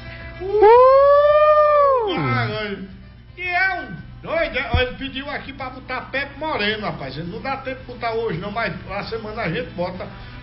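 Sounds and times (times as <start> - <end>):
people booing: 0.4 - 2.4
speech: 5.0 - 10.4.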